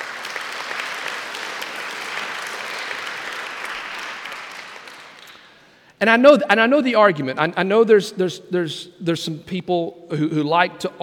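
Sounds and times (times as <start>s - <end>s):
audience applause: 0.0s - 5.5s
speech: 6.0s - 11.0s.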